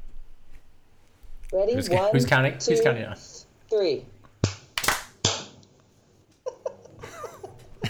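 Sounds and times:
speech: 0:01.5 - 0:04.1
group hand claps for audio sync: 0:04.4 - 0:05.4
light laughter: 0:06.4 - 0:07.8.

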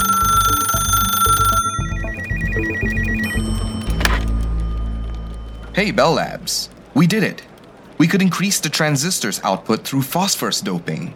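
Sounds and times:
telephone ringing: 0:00.0 - 0:06.9
loud rhythmic low background: 0:00.0 - 0:07.2
speech: 0:05.8 - 0:11.1.

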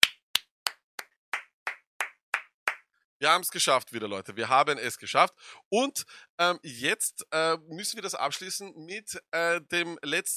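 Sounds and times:
hands clapping: 0:00.0 - 0:02.9
speech: 0:03.2 - 0:10.3.

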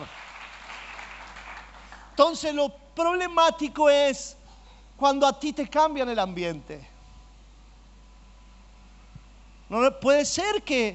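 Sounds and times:
crowd applause: 0:00.0 - 0:02.2
speech: 0:02.2 - 0:04.4, 0:05.0 - 0:06.9, 0:09.7 - 0:10.9.

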